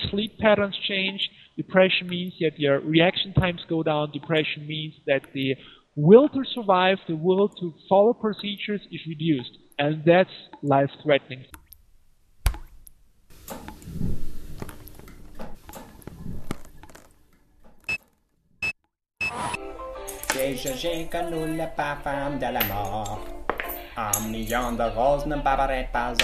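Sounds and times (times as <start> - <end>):
speech: 0.1 - 11.6, 20.5 - 23.4, 24.0 - 26.2
coins clinking into a bucket: 20.1 - 21.6, 22.6 - 24.9.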